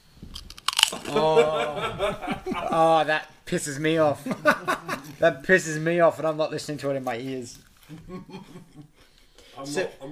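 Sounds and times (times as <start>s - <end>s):
crunching chips being eaten: 0.3s - 1.2s
laughter: 0.9s - 3.2s, 4.0s - 5.4s, 7.8s - 9.0s
speech: 0.9s - 8.9s, 9.6s - 10.1s.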